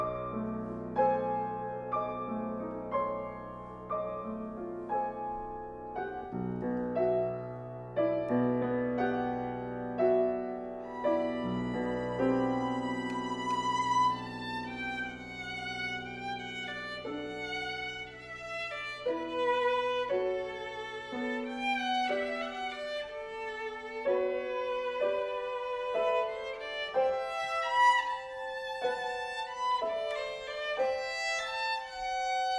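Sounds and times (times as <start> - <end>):
violin and piano sonata: 0.0 - 32.5.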